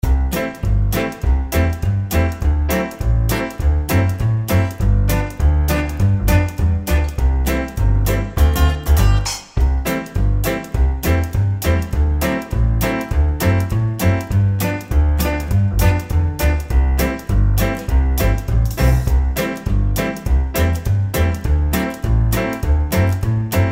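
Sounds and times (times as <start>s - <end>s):
barbershop music loop: 0.0s - 23.7s.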